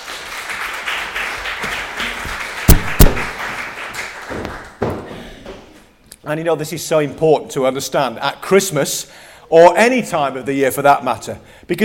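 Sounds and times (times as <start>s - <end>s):
audience applause for volunteers: 0.0s - 4.8s
speech: 6.3s - 11.8s.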